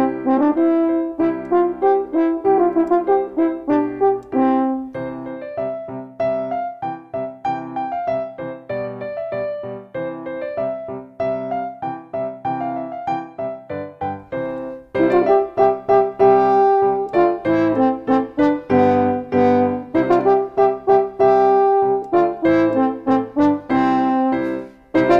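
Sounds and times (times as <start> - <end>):
French horn solo: 0.0 - 5.0, 14.9 - 25.1
piano accompaniment: 0.0 - 25.1.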